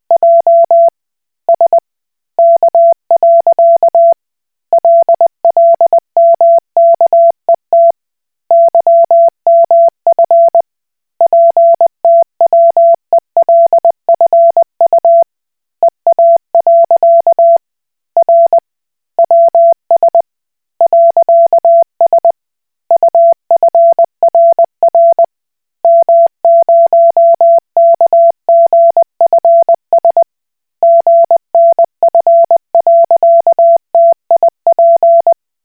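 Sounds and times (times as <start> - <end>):
Koch Morse code beeps: 0.2 - 0.9, 2.4 - 4.2, 4.8 - 7.9, 8.5 - 10.6, 11.3 - 15.2, 16.2 - 17.6, 18.2 - 18.6, 19.3 - 20.2, 20.8 - 22.3, 23.0 - 30.2, 30.8 - 35.4.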